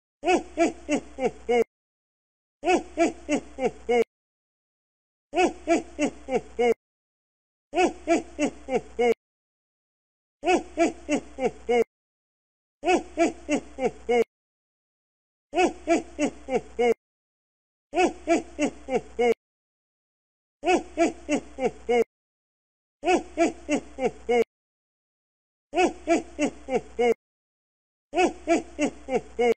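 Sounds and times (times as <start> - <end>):
Santa Claus laughing: 0.2 - 1.7, 2.6 - 4.1, 5.3 - 6.8, 7.7 - 9.2, 10.4 - 11.9, 12.8 - 14.3, 15.5 - 17.0, 17.9 - 19.4, 20.6 - 22.1, 23.0 - 24.5, 25.7 - 27.2, 28.1 - 29.5.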